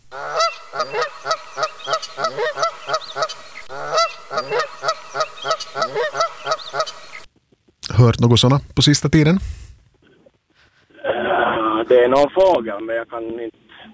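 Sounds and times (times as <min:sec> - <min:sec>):
Canada geese honking: 0:00.0 - 0:07.3
speech: 0:08.0 - 0:09.6, 0:11.9 - 0:13.9.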